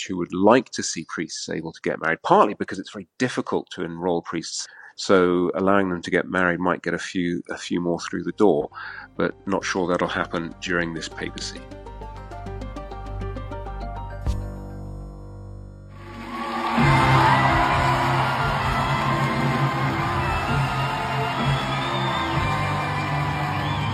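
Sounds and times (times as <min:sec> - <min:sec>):
speech: 0:00.0 - 0:11.9
musical theatre audience applause and whoops for an actress: 0:16.0 - 0:23.9.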